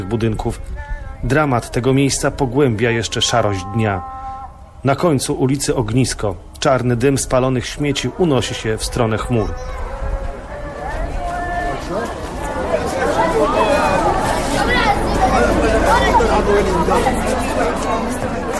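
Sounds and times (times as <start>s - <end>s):
dense street crowd at an intersection, mostly women, chattering loudly: 0.0s - 18.5s
speech: 0.1s - 4.2s, 4.8s - 10.2s, 16.5s - 18.4s.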